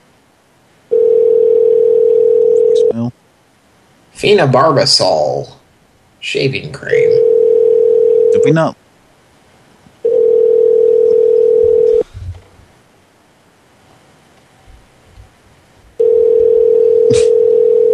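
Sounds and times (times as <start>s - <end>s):
telephone ringback tone on an unanswered call: 0.9s - 2.9s, 7.1s - 8.4s, 10.0s - 12.0s, 16.0s - 17.9s
speech: 3.0s - 3.2s, 4.2s - 5.6s, 6.2s - 7.3s, 8.4s - 8.8s.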